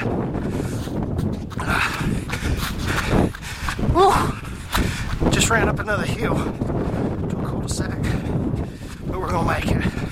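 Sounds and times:
wind howling: 0.0 - 10.0
speech: 5.5 - 6.7, 7.7 - 8.3.

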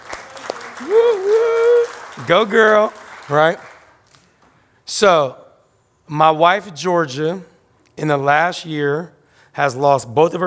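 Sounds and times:
audience applause: 0.0 - 4.1
speech: 0.8 - 1.6, 2.2 - 3.7, 4.9 - 5.4, 6.1 - 10.4.

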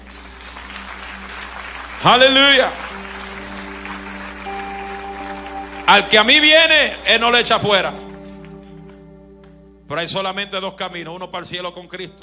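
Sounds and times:
crowd clapping in a reverberant hall: 0.0 - 9.6
speech: 2.0 - 2.8, 5.9 - 8.0, 9.9 - 12.2
low sustained keyboard tone: 2.8 - 11.4.

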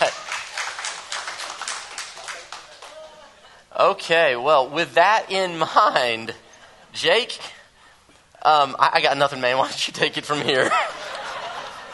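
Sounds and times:
laughter: 0.0 - 0.5, 10.4 - 11.9
round of applause: 0.0 - 3.1
speech: 3.8 - 6.4, 7.0 - 7.6, 8.4 - 11.2.

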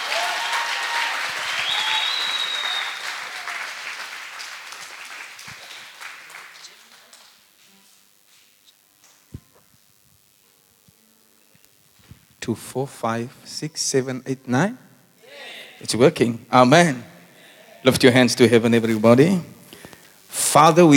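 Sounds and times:
audience applause welcoming a pastor to the platform: 0.0 - 7.4
speech: 12.5 - 14.8, 15.8 - 17.1, 17.8 - 19.5, 20.5 - 20.9.

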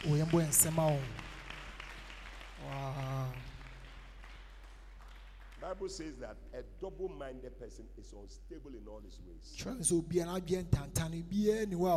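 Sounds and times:
speech: 0.0 - 1.2, 5.6 - 11.9
audience clapping: 0.0 - 6.4.

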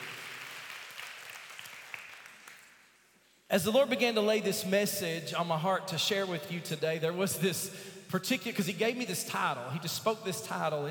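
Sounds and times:
audience clapping hands in praise: 0.0 - 3.1
speech: 3.5 - 10.8.

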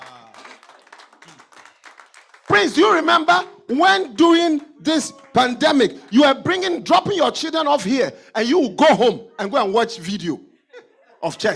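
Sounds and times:
audience clapping: 0.0 - 3.2, 4.0 - 6.4
speech: 2.6 - 10.5, 11.2 - 11.5.

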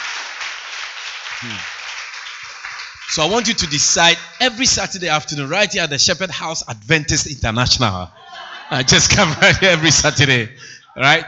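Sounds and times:
congregation clapping during a church service: 0.0 - 5.4, 8.7 - 10.4
short low vocal sound: 1.4 - 1.7
speech: 1.4 - 1.8, 3.1 - 11.2
laughter: 8.1 - 11.0.

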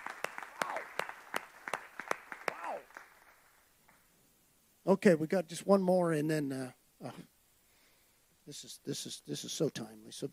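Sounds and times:
audience hand clapping applause: 0.0 - 4.1
speech: 4.9 - 7.3, 8.5 - 10.3.

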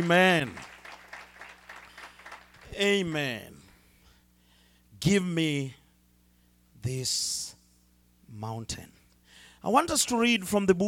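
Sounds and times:
speech: 0.0 - 0.7, 2.8 - 3.5, 5.0 - 5.8, 6.8 - 7.6, 8.3 - 9.0, 9.6 - 10.8
audience hand clap of praise: 0.0 - 3.2.

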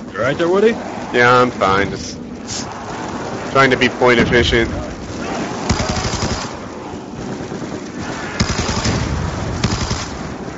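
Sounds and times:
speech: 0.2 - 2.8, 3.6 - 4.9
automatic machine-gun fire in a video game: 2.8 - 10.5.

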